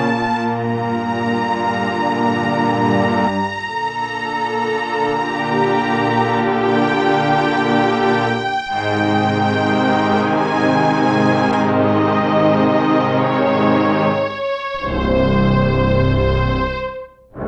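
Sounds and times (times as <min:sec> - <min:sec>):
cellos: 0:00.0 - 0:17.4
violins: 0:00.0 - 0:17.4.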